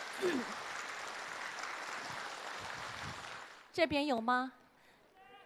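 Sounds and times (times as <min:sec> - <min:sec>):
audience clapping: 0:00.0 - 0:03.8
speech: 0:00.2 - 0:00.6, 0:03.8 - 0:04.6.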